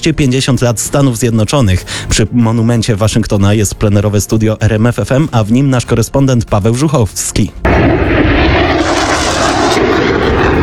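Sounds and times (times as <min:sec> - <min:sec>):
speech: 0:00.0 - 0:08.0
US Air Force military aircraft flyover over Washington, roaring engines: 0:07.6 - 0:10.6.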